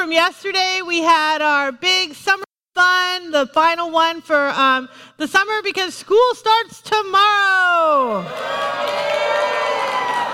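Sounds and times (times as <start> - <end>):
speech: 0.0 - 9.5
parents cheering at an outdoor summer water-activity event: 8.1 - 10.3.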